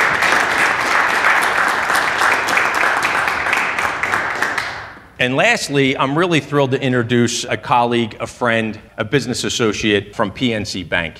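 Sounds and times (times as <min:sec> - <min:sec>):
round of applause: 0:00.0 - 0:05.0
speech: 0:05.2 - 0:11.1.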